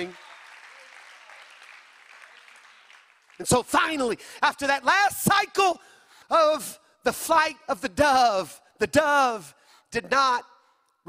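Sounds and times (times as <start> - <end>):
speech: 0.0 - 0.2, 3.4 - 10.5
audience clapping hands: 0.0 - 4.2.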